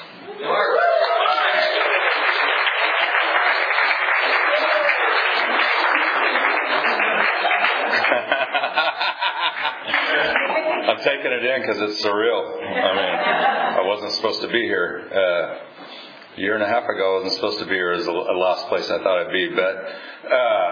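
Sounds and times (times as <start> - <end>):
audience applause welcoming a warm-up speaker: 0.5 - 10.7
crowd chuckling: 5.4 - 11.0, 12.6 - 13.9
speech: 11.0 - 15.7, 16.4 - 20.6.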